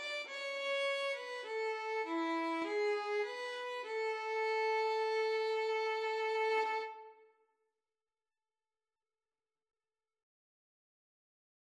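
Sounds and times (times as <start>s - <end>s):
violin and cello duet: 0.0s - 7.1s.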